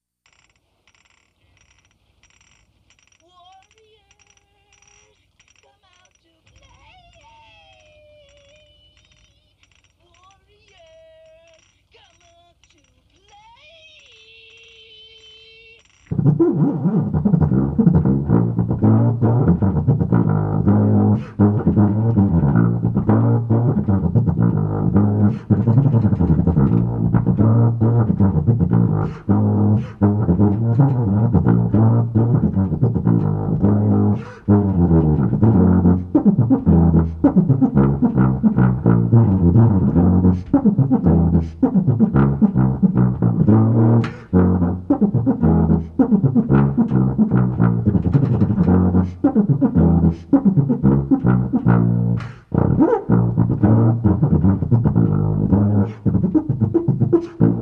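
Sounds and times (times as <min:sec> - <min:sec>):
brass band playing: 0:16.3 - 0:57.6.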